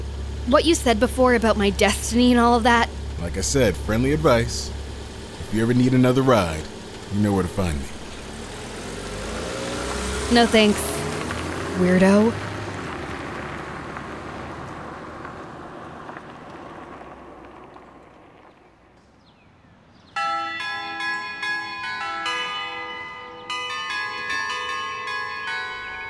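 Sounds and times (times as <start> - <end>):
speech: 0.5 - 4.8, 5.5 - 8.0, 10.3 - 10.9, 11.8 - 12.4
doorbell ringing: 20.2 - 26.0.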